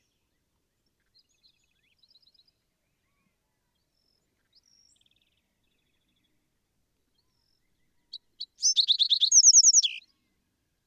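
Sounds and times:
Bewick's Wren: 8.6s - 10.0s.

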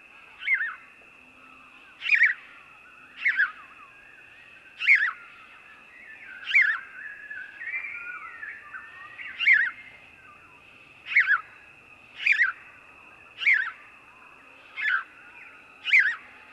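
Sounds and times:
house sparrow uttering sharp emphatic chirps: 2.0s - 2.5s, 3.2s - 3.6s, 4.8s - 5.3s, 6.4s - 6.9s, 8.2s - 9.8s, 11.0s - 11.5s, 12.2s - 12.6s, 13.4s - 13.8s, 14.7s - 15.1s, 15.8s - 16.4s.

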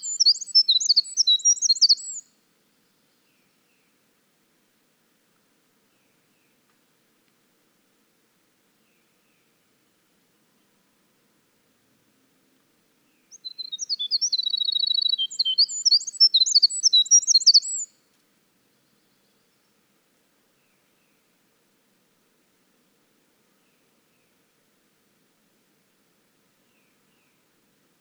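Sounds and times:
winter wren song: 0.0s - 2.3s, 13.1s - 18.0s.

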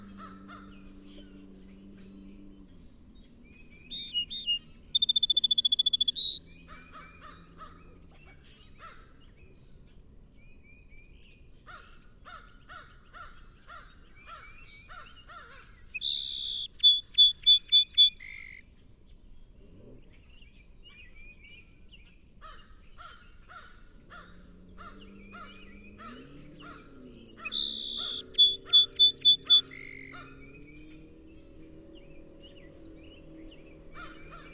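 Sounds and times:
song sparrow singing: 0.0s - 7.0s, 13.2s - 18.6s, 24.8s - 34.5s.

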